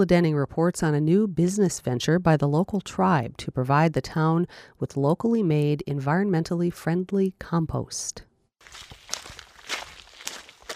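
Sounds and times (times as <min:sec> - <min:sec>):
speech: 0:00.0 - 0:09.0
footsteps crunching on the road into a landfill: 0:08.6 - 0:10.7.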